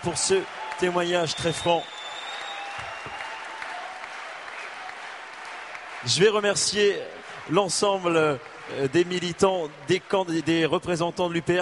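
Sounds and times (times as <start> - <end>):
speech: 0.0 - 2.0, 6.0 - 11.6
audience applause: 0.0 - 11.6.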